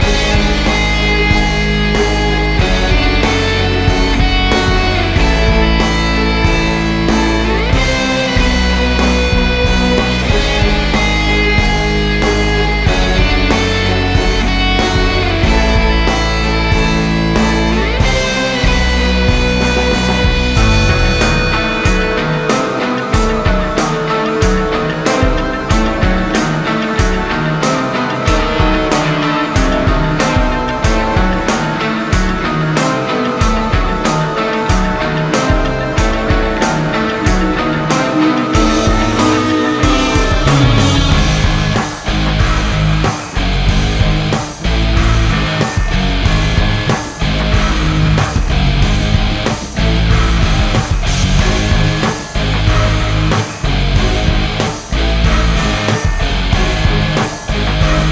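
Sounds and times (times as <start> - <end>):
combat music theme: 0.0 - 58.1.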